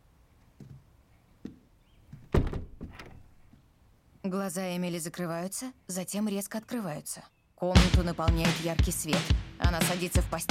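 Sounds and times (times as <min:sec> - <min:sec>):
door being closed: 0:02.2 - 0:03.5
speech: 0:04.3 - 0:10.4.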